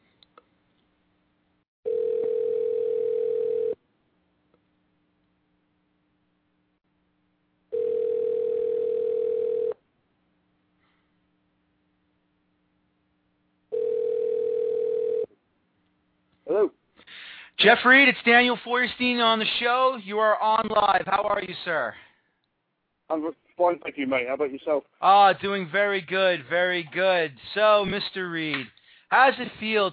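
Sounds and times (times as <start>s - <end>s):
outgoing telephone call ringing tone: 1.9s - 3.8s, 7.7s - 9.8s, 13.7s - 15.3s
speech: 17.6s - 22.1s, 23.1s - 29.9s.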